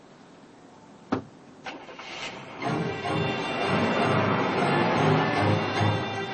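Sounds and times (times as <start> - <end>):
car engine turning over and running: 1.6 - 6.3.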